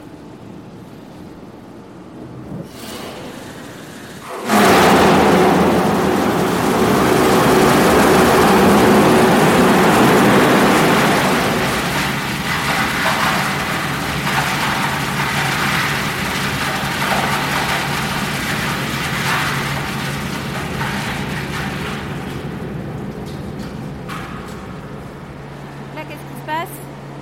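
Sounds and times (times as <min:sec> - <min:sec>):
turbine wheels spinning up to full power: 0:02.6 - 0:22.6.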